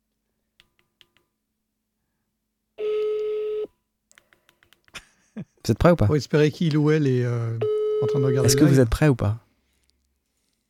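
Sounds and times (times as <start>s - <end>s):
telephone tone while calling a PolyBrute synthesizer contest winner: 2.8s - 3.7s, 7.6s - 8.7s
speech: 5.4s - 9.4s.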